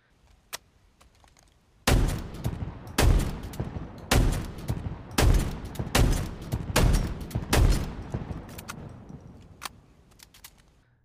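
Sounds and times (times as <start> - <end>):
video game shotgun blasts: 1.8 - 9.6
faint mechanical clicks: 2.8 - 10.8.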